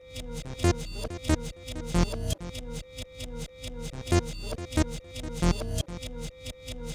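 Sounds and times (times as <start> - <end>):
hardcore breakbeat music in F minor: 0.5 - 2.4, 4.0 - 5.9.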